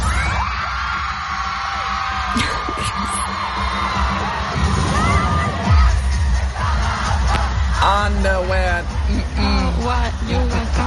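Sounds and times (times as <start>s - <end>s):
concert crowd cheering at a pop show in Cologne: 0.0s - 7.8s
loud pop concert music with pounding bass in Cologne: 0.0s - 10.8s.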